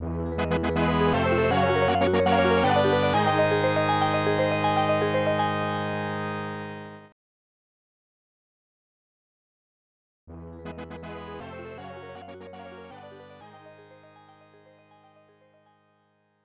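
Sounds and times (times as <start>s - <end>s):
level clear fanfare: 0.4s - 6.9s.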